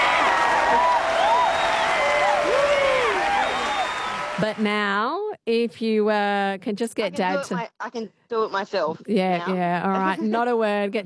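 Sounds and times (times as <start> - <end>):
applause for a correct answer: 0.0 - 4.7
speech: 4.4 - 11.0.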